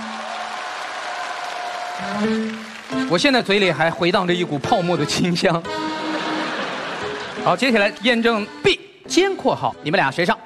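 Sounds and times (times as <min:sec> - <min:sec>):
studio audience applause: 0:00.0 - 0:03.8
speech: 0:02.0 - 0:05.8, 0:07.4 - 0:10.4
laughter: 0:05.8 - 0:08.2.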